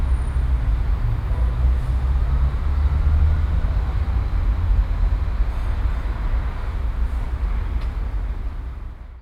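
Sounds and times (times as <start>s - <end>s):
city street ambience on an avenue near a factory: 0.0s - 9.2s.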